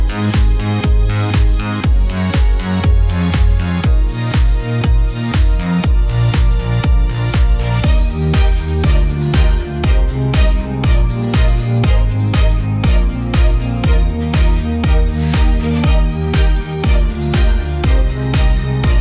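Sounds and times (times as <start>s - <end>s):
backing track: 0.0s - 19.0s.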